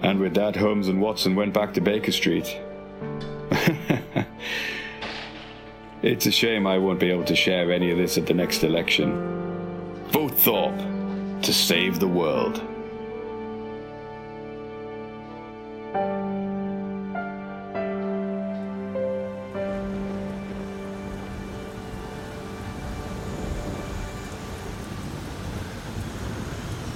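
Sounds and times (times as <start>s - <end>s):
sustained musical chords: 0.0s - 26.9s
speech: 0.1s - 3.8s, 6.0s - 9.4s, 10.2s - 12.7s
laughter: 3.5s - 4.9s
heavy rain: 18.6s - 26.9s.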